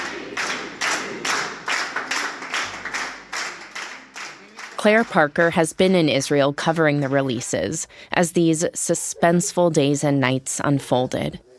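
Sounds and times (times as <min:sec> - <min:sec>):
families cheering: 0:00.0 - 0:04.9
families clapping: 0:00.0 - 0:07.4
speech: 0:04.8 - 0:11.5.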